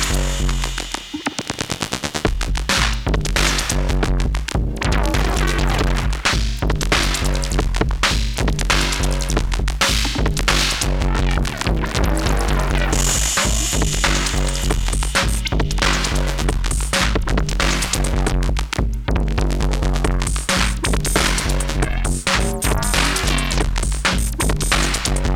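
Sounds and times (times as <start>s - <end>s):
old live music recording heavily processed with max compression: 0.0s - 18.8s, 19.4s - 25.3s.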